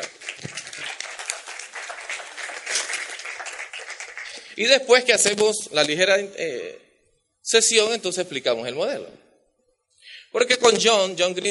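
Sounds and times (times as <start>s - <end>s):
audience applause: 0.0s - 4.6s
speech: 4.6s - 6.8s, 7.5s - 9.2s, 10.3s - 11.4s.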